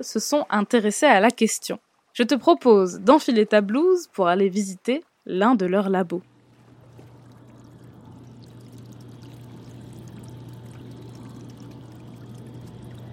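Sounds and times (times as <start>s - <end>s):
speech: 0.0s - 6.3s
aquarium pumps humming in a lab room: 6.2s - 13.1s.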